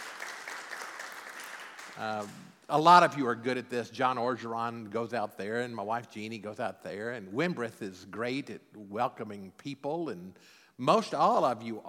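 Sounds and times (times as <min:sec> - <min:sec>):
audience clapping: 0:00.0 - 0:02.6
speech: 0:02.0 - 0:11.8.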